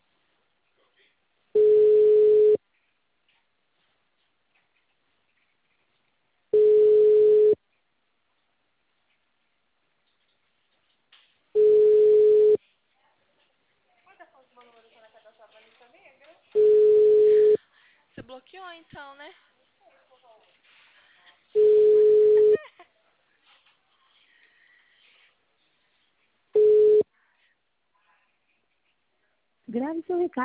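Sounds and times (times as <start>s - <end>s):
ringback tone of an outgoing phone call in Brazil: 1.6s - 2.6s, 6.6s - 7.6s, 11.6s - 12.6s, 16.6s - 17.6s, 21.6s - 22.6s, 26.6s - 27.0s
speech: 18.4s - 19.5s, 29.7s - 30.4s.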